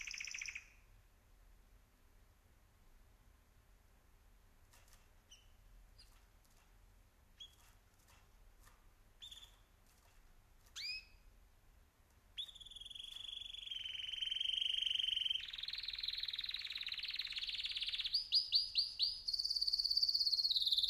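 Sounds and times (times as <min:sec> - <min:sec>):
birds: 0:00.0 - 0:00.9, 0:07.4 - 0:11.3, 0:12.3 - 0:20.8.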